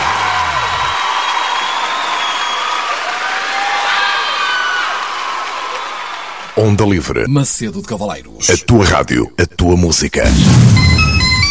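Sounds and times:
audience applause and cheering: 0:00.0 - 0:07.0
speech: 0:06.6 - 0:11.0.

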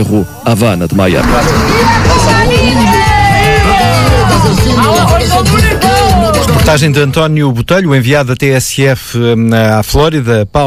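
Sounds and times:
speech: 0:00.0 - 0:02.9, 0:06.4 - 0:10.6
protest crowd shouting slogans: 0:01.2 - 0:06.4.

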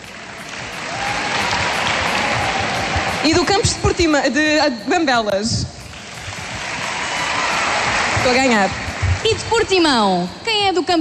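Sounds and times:
audience clapping: 0:00.0 - 0:03.8, 0:05.8 - 0:09.9
speech: 0:03.2 - 0:05.8, 0:08.2 - 0:10.9.

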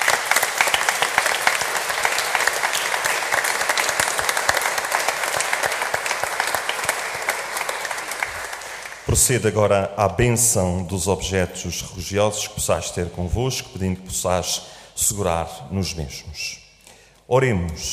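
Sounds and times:
audience applause: 0:00.0 - 0:09.3
speech: 0:09.2 - 0:16.6, 0:17.3 - 0:17.9.

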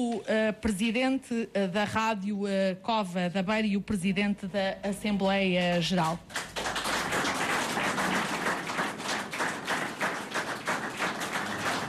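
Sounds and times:
speech: 0:00.0 - 0:06.5
audience applause: 0:06.3 - 0:11.8.

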